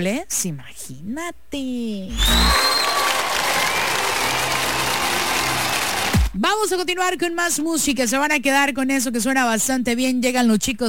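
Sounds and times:
speech: 0:00.0 - 0:02.8, 0:06.4 - 0:10.8
applause sound effect: 0:02.2 - 0:06.4.

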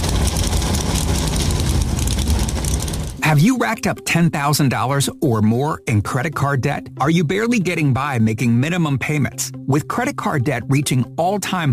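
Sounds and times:
NASCAR race car engines roaring to life on the pit lane: 0:00.0 - 0:03.2
Navy Hornet jets passing overhead: 0:00.0 - 0:03.2
speech: 0:03.3 - 0:11.7.

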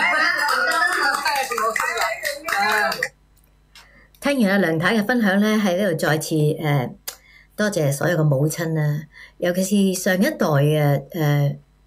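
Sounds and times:
audience applause: 0:00.0 - 0:03.1
crowd voices: 0:00.0 - 0:03.1
speech: 0:04.3 - 0:07.0, 0:07.6 - 0:11.6.

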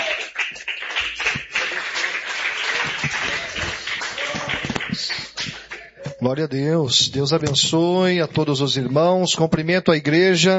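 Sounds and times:
crowd applauding: 0:00.0 - 0:06.0
speech: 0:06.2 - 0:10.5.

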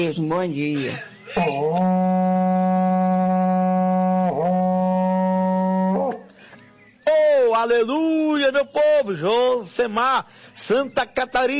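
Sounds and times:
speech: 0:00.0 - 0:02.1, 0:07.6 - 0:11.5
berrante cattle horn blowing: 0:01.4 - 0:06.3.

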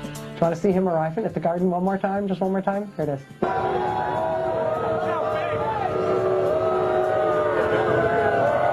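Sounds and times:
speech: 0:00.4 - 0:04.2
crowd booing arriving man: 0:03.4 - 0:08.7.

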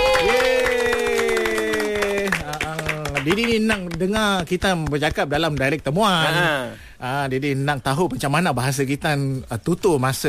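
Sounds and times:
cheering voices holding sung-out tones: 0:00.0 - 0:03.4
group clapping: 0:00.0 - 0:06.2
speech: 0:03.2 - 0:10.2.

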